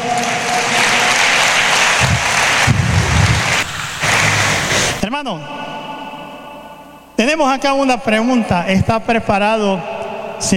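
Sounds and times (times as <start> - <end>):
audience applause: 0.0 - 5.0
speech: 5.1 - 5.6, 7.2 - 10.5.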